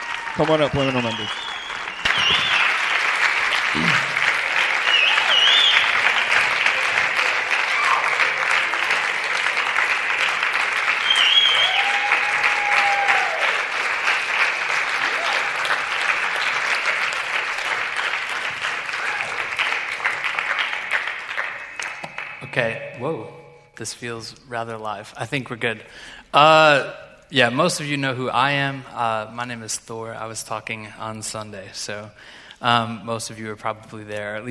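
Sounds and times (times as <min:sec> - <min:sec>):
audience applause: 0:00.0 - 0:22.7
speech: 0:00.4 - 0:01.6, 0:23.1 - 0:34.4.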